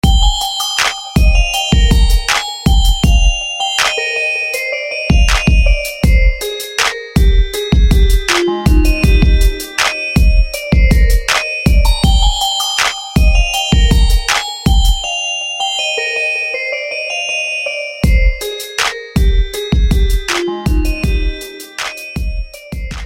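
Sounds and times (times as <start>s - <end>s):
baby lullaby: 0.0s - 23.0s.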